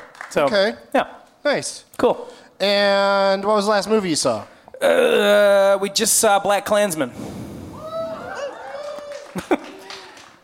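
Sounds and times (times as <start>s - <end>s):
speech: 0.3s - 7.5s
audience member booing: 4.8s - 5.8s.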